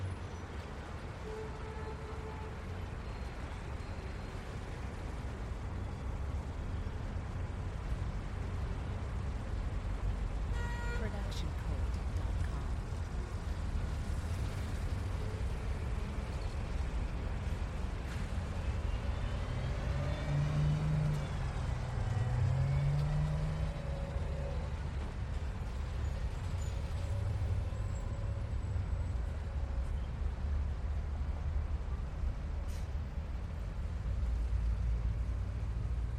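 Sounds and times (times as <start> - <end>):
city ambience: 0.0 - 36.1.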